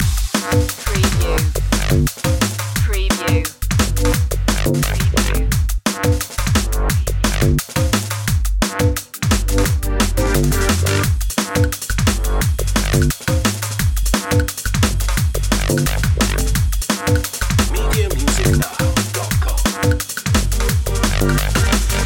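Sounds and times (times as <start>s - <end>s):
drum and bass loop: 0.0s - 22.0s.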